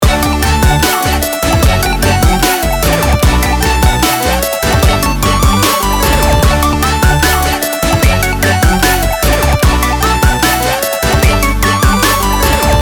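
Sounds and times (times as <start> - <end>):
ringtone: 0.0 - 12.7.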